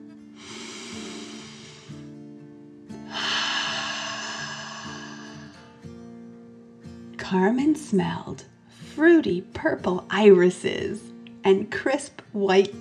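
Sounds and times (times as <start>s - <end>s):
steady gentle music: 0.0s - 12.7s
deep slow dragon breath in and out: 0.3s - 2.2s, 3.0s - 5.8s
speech: 7.3s - 12.7s.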